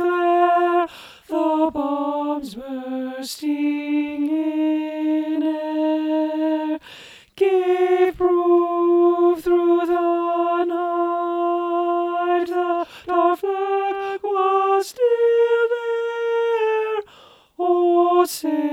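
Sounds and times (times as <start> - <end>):
alto choir voices: 0.0 - 18.7.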